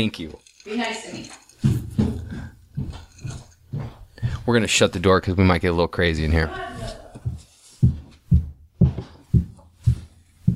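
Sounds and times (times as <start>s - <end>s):
speech: 0.0s - 1.4s, 4.5s - 6.7s
high heels walking up a staircase: 1.5s - 4.8s, 6.5s - 10.5s.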